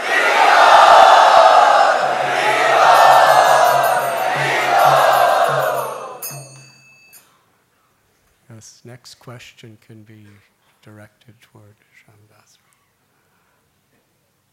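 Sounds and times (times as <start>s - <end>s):
crowd cheering loudly in welcome: 0.0s - 6.8s
speech: 9.2s - 12.7s.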